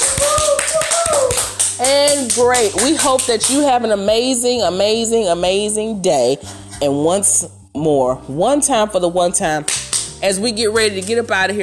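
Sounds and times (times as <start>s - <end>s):
round of applause: 0.0s - 1.7s
speech: 1.8s - 11.6s.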